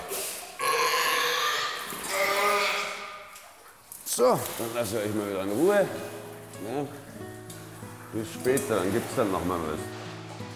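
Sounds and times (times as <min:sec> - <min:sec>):
young seal grunting: 0:00.6 - 0:03.3
speech: 0:04.2 - 0:07.2, 0:08.1 - 0:09.9.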